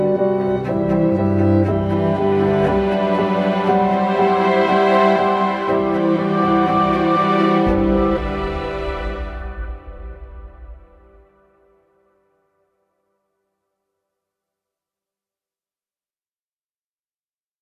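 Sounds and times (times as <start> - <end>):
ambient music: 0.0 - 12.8.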